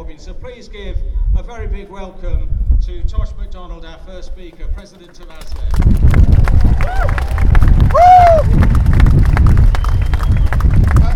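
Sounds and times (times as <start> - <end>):
speech: 0.1 - 8.8
audience clapping: 5.4 - 11.1
cheers: 6.1 - 11.1
whistles: 9.7 - 10.8.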